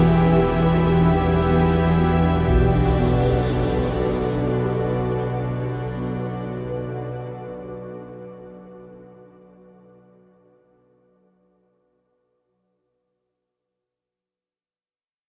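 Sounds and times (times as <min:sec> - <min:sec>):
downfall ambient music: 0:00.0 - 0:11.2.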